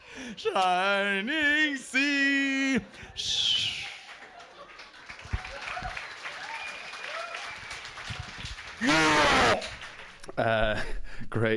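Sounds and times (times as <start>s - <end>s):
speech: 0.3s - 3.6s, 10.4s - 11.5s
audience round of applause: 3.0s - 10.3s.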